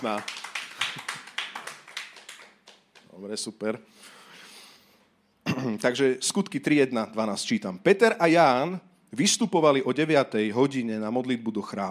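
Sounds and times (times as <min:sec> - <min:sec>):
speech: 0:00.0 - 0:00.4, 0:03.2 - 0:04.2, 0:05.6 - 0:11.8
light applause from a small audience: 0:00.0 - 0:03.1.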